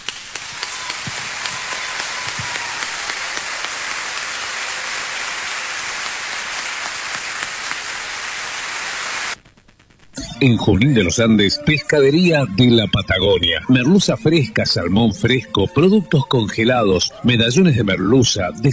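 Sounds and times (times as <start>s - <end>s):
audience applause: 0.0s - 9.4s
speech: 10.4s - 18.7s.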